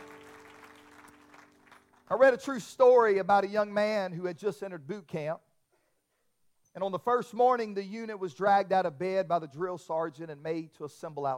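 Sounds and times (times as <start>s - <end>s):
crowd clapping in a large room: 0.0s - 2.3s
speech: 2.1s - 5.5s, 6.8s - 11.3s.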